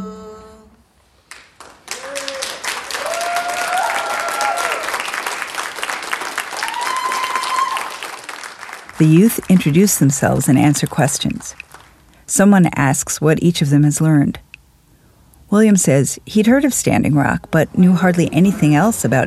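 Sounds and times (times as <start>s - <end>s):
audience cheering and applauding in standing ovation: 1.3s - 10.2s, 11.2s - 12.0s
speech: 9.0s - 11.6s, 12.3s - 14.4s, 15.5s - 19.2s.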